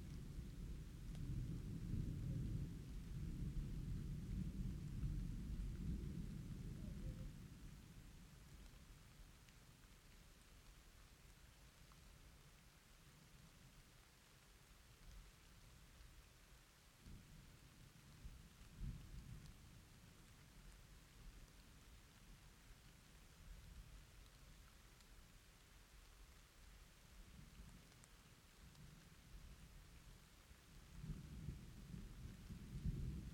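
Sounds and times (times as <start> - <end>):
thunderstorm high in the mountain valley: 0.0 - 8.2, 18.1 - 19.7, 30.8 - 33.3.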